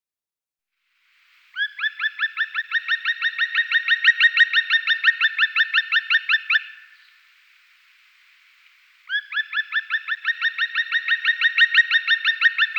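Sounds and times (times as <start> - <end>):
black woodpecker giving sharp ringing notes: 1.6 - 7.2, 8.6 - 12.7.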